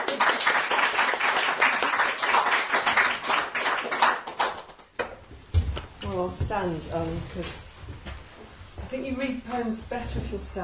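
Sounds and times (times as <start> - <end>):
audience applause welcoming a poet to a poetry reading: 0.0 - 4.9
speech: 6.2 - 7.6, 8.9 - 10.6.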